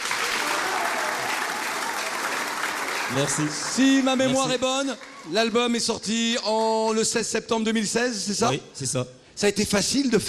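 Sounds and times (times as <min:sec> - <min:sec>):
audience applause: 0:00.0 - 0:05.8
speech: 0:03.1 - 0:10.2.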